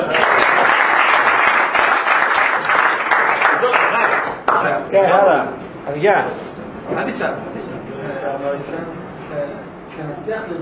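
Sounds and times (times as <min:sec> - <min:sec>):
audience applause: 0:00.0 - 0:04.6
speech: 0:04.9 - 0:07.5, 0:08.4 - 0:10.6.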